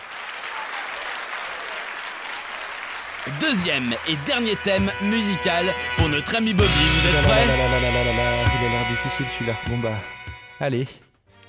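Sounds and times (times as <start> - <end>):
audience applause: 0.0 - 4.5
speech: 3.2 - 11.0.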